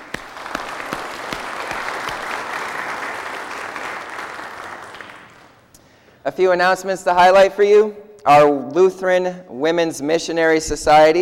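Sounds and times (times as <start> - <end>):
congregation applauding to welcome a new member during a church service: 0.0 - 5.7
speech: 6.3 - 11.2.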